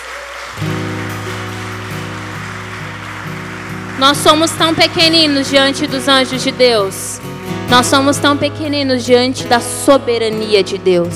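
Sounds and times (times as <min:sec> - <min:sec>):
audience applause: 0:00.0 - 0:06.5
speech: 0:04.0 - 0:11.1.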